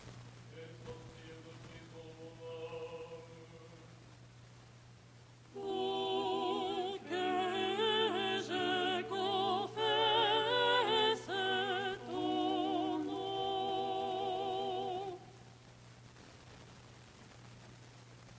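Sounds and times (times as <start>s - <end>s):
soprano chanting tone 6 lucernarium stichera: 0.5s - 3.9s, 5.5s - 15.4s.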